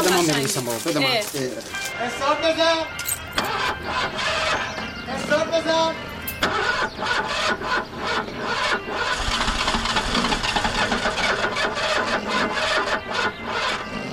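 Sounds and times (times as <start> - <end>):
speech: 0.2 - 9.3
car engine cranking but failing to start: 3.0 - 14.1.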